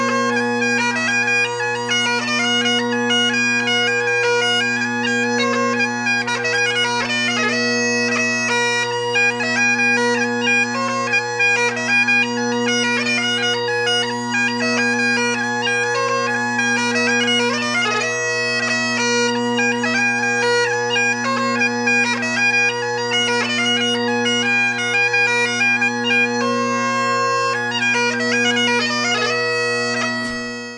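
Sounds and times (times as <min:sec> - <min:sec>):
bagpipes playing dance tunes: 0:00.0 - 0:30.7.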